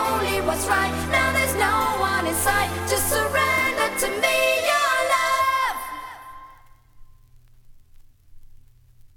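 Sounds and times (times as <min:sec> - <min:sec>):
a cappella singing: 0:00.0 - 0:06.7.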